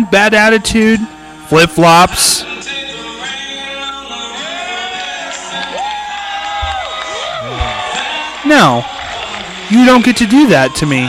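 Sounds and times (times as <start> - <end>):
speech: 0.1 - 2.5, 8.4 - 8.9, 9.7 - 11.0
concert crowd cheering and whooping: 4.4 - 11.0.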